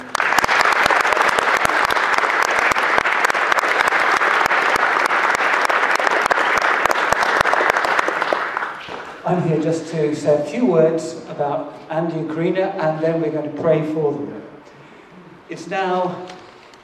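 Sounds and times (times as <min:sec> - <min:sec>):
audience applause: 0:00.0 - 0:09.2
speech: 0:09.3 - 0:14.4, 0:15.6 - 0:16.3.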